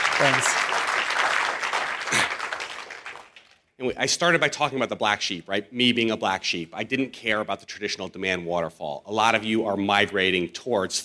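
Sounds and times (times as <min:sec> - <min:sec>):
audience applause: 0:00.0 - 0:03.6
speech: 0:00.2 - 0:00.8, 0:03.8 - 0:11.0.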